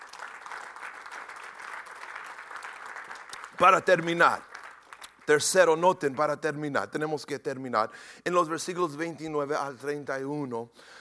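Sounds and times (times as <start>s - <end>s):
church audience applauding: 0.0s - 5.8s
speech: 3.6s - 4.5s, 5.3s - 10.9s.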